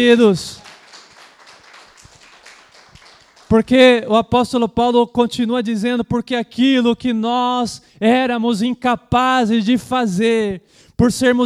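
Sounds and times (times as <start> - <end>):
speech: 0.0 - 0.6, 3.5 - 11.4
audience clapping: 0.0 - 4.1.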